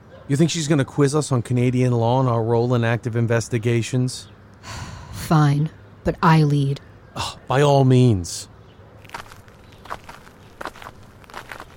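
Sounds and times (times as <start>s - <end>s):
speech: 0.3s - 8.5s
footsteps walking up a brick driveway: 9.0s - 11.7s.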